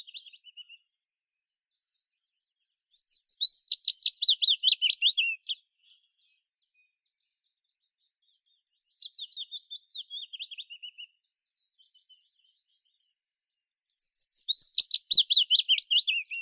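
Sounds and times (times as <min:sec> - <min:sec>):
Phylloscopus trochilus willow warbler singing: 0:02.8 - 0:05.6, 0:07.9 - 0:12.9, 0:13.6 - 0:16.3.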